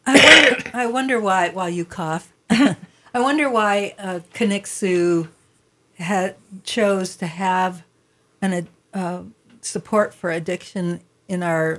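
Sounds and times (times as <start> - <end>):
man coughing or clearing throat: 0.1 - 0.7
speech: 0.7 - 5.4, 6.0 - 11.7.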